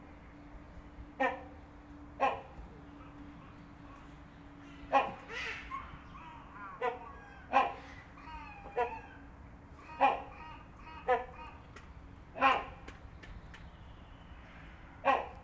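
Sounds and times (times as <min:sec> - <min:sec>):
Great Hornbill and Rhinoceros Hornbill honks and barks: 0:01.2 - 0:01.6, 0:02.2 - 0:11.7, 0:12.4 - 0:12.9, 0:15.0 - 0:15.4.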